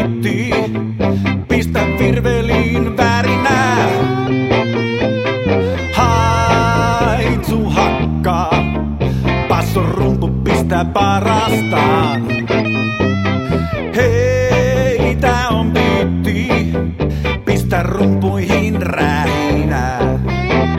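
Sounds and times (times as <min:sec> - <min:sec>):
beat without drums: 0:00.0 - 0:20.7.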